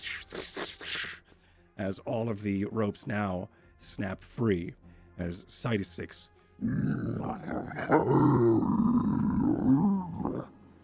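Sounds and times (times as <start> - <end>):
speech: 0.2 - 0.6, 1.8 - 9.2
giant creature groaning and grunting as its roots loosen from the earth: 6.6 - 10.6.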